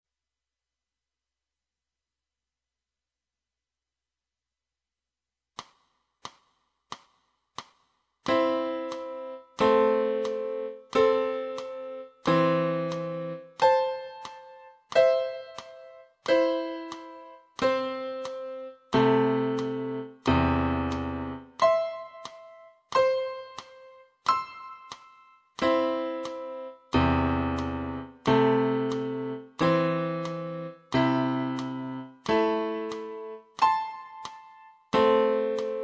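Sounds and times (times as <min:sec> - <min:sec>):
piano: 0:08.2 - 0:35.8.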